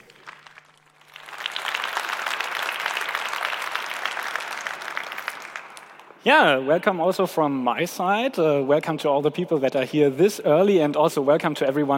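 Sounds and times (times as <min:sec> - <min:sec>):
audience applause: 0:00.0 - 0:06.2
speech: 0:06.2 - 0:11.9.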